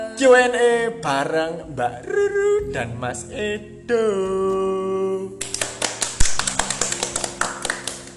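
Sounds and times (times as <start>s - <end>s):
speech: 0.2s - 4.8s
hand clapping: 5.4s - 8.1s.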